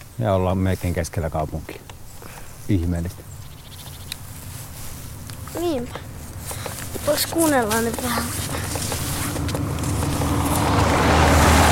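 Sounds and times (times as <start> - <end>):
speech: 0.2 - 1.9, 2.7 - 3.3, 5.5 - 6.1, 7.1 - 9.1
car driving past: 8.6 - 11.7.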